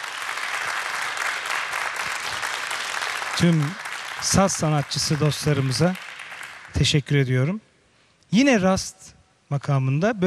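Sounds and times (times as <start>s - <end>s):
audience applause after a musical performance by an orchestra: 0.0s - 6.8s
speech: 3.4s - 6.0s, 6.8s - 7.7s, 8.3s - 10.2s.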